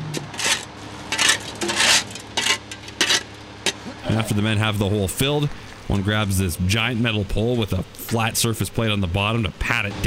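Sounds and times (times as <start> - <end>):
asphalt sliding down a metal truck chute: 0.0 - 5.5
speech: 4.1 - 10.0.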